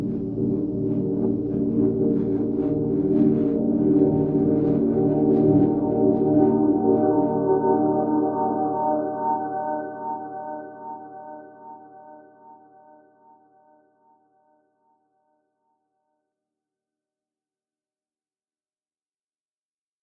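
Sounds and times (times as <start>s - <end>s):
ambient piano music: 0.0s - 13.4s.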